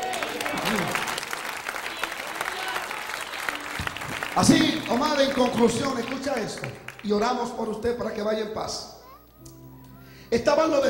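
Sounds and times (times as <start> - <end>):
audience applauding: 0.0 - 7.8
speech: 4.4 - 8.9, 10.3 - 10.8.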